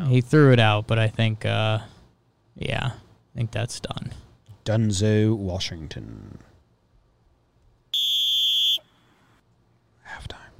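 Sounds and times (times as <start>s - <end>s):
speech: 0.1s - 2.0s, 2.6s - 6.5s
sharp referee-style whistle: 7.9s - 9.0s.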